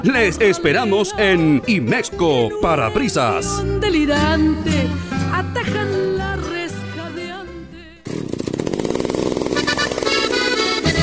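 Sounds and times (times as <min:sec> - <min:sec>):
speech: 0:00.0 - 0:05.9
chainsaw two-stroke engine running and revving: 0:08.0 - 0:11.0.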